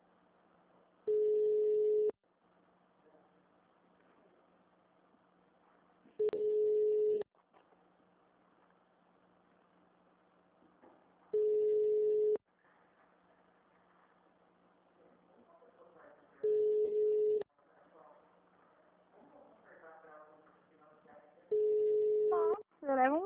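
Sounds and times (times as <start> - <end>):
telephone ringback tone on unanswered call to city hall HR department: 1.1 - 2.1, 6.2 - 7.2, 11.4 - 12.4, 16.4 - 17.4, 21.6 - 22.6.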